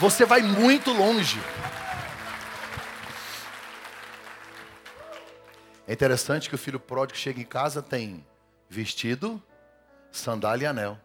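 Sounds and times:
speech: 0.0s - 1.6s, 5.9s - 9.5s, 10.1s - 11.0s
audience applause: 0.0s - 5.8s.

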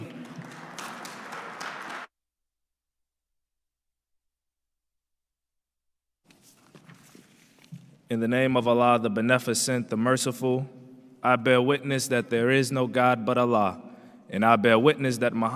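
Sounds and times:
crowd applause: 0.0s - 2.1s
speech: 8.1s - 15.5s.

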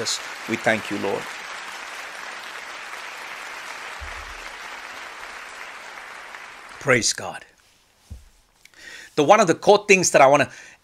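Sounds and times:
speech: 0.0s - 1.4s, 6.8s - 7.5s, 9.2s - 10.8s
audience clapping hands: 0.0s - 7.4s.

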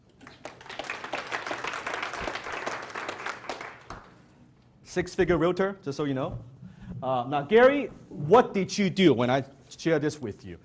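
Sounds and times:
audience applause: 0.2s - 4.1s
speech: 5.0s - 10.6s.

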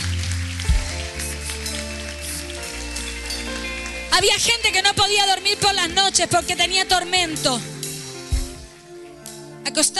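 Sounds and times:
audience applause: 0.0s - 4.8s
speech: 4.2s - 7.7s, 9.7s - 9.9s.

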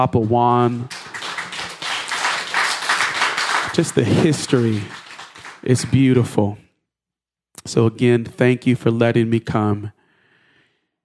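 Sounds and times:
speech: 0.0s - 1.0s, 3.8s - 5.0s, 5.6s - 6.6s, 7.6s - 10.0s
round of applause: 0.6s - 6.3s.

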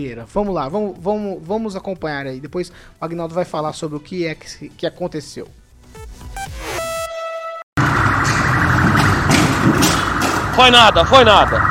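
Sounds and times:
speech: 0.0s - 5.6s, 10.6s - 11.6s
loud electronic siren wailing: 6.0s - 8.8s
heavy continuous roar of engine and road noise: 7.8s - 11.6s.

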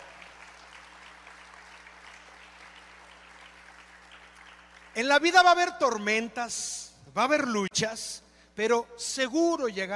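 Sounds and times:
audience applause: 0.0s - 5.0s
speech: 5.0s - 9.9s.

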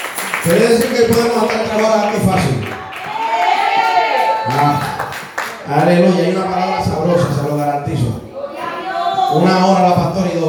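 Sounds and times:
audience clapping: 0.0s - 6.2s
speech: 0.4s - 2.8s, 4.5s - 5.0s, 5.7s - 8.2s, 9.3s - 10.4s.

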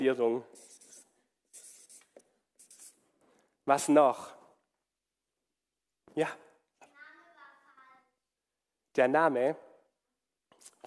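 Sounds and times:
speech: 0.0s - 0.7s, 3.7s - 4.4s, 6.2s - 6.4s, 9.0s - 9.6s
writing scratches: 0.5s - 3.1s.

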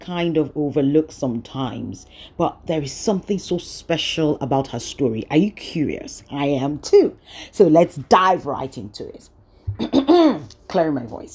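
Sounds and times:
speech: 0.0s - 11.3s
person making an ahem throat-clearing sound: 9.7s - 10.6s.

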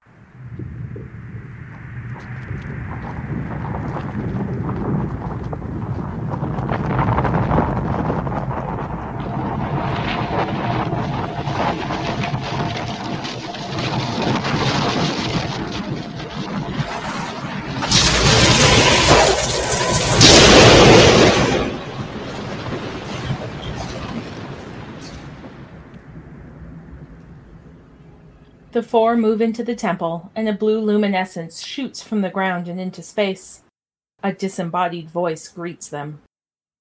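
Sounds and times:
ground shaking as rock columns burst up: 0.0s - 28.7s
speech: 28.8s - 33.6s, 34.2s - 36.3s.

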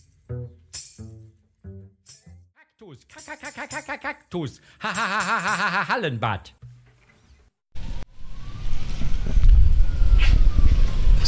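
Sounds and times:
speech: 3.0s - 6.6s
laughter: 4.8s - 6.1s
faint emergency siren wailing: 7.8s - 11.2s
steady low rumble of traffic: 7.8s - 11.2s.

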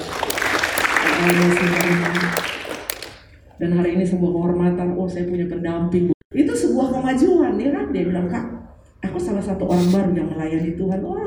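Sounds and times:
audience applause: 0.0s - 3.2s
speech: 1.2s - 2.5s, 3.6s - 6.2s, 6.9s - 11.2s.

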